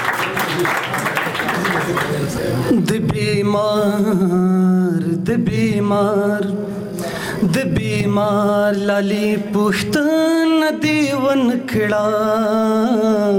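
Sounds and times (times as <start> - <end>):
audience clapping for a poet at a Pashto poetry gathering: 0.0 - 2.6
speech: 0.6 - 0.9, 2.4 - 6.8, 7.4 - 13.3
person speaking or reciting: 2.1 - 13.3.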